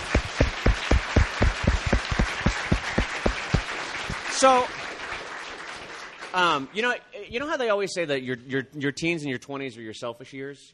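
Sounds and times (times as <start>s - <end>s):
applause: 0.0s - 7.0s
speech: 4.4s - 4.8s, 6.3s - 10.7s.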